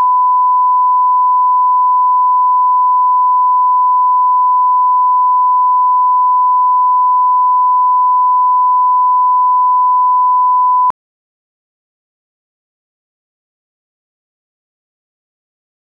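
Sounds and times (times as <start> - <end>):
1kHz sine tone in left and right channels: 0.0 - 10.9.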